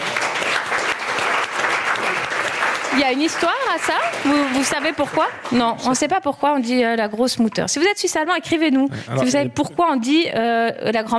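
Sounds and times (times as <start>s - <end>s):
audience applause: 0.0s - 5.7s
speech: 3.0s - 11.1s.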